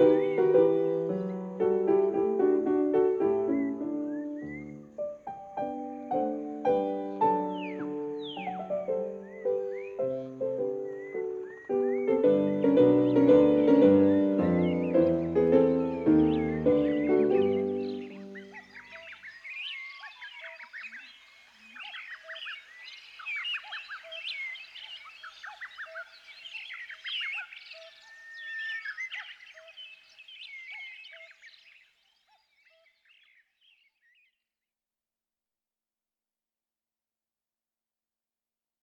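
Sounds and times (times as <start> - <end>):
minuet: 0.0 - 18.6.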